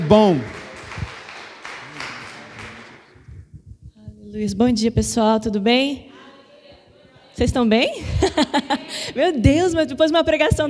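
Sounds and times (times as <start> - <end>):
audience applause: 0.0 - 3.2
speech: 0.1 - 0.6, 4.4 - 6.1, 7.4 - 10.6
laughter: 8.0 - 9.3.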